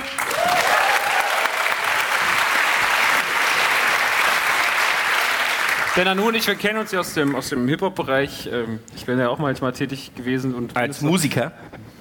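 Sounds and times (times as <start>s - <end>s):
audience applause: 0.0s - 7.4s
speech: 6.0s - 11.9s.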